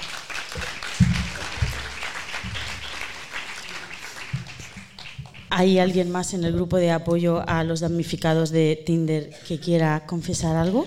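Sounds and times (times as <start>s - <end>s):
applause: 0.0s - 5.6s
speech: 5.5s - 10.8s.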